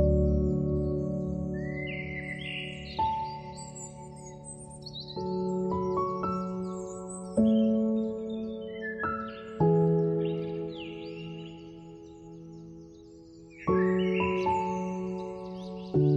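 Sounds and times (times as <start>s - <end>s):
bright quick birdsong chirps and trills: 0.0s - 16.1s
soft piano playing slow sustained chords: 0.0s - 16.1s.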